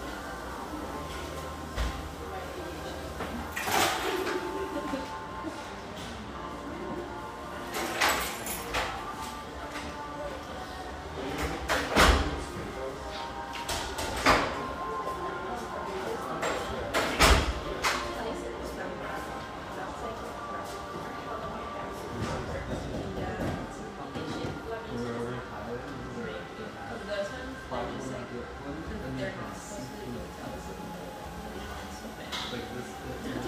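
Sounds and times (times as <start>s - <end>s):
coffeehouse chatter: 0.0s - 33.4s
mellow radio music: 0.0s - 33.4s.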